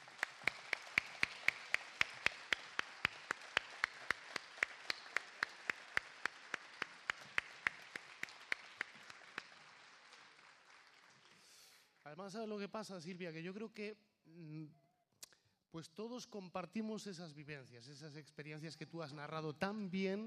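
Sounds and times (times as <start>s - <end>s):
audience applause: 0.0s - 11.7s
speech: 12.1s - 14.8s, 15.7s - 20.2s.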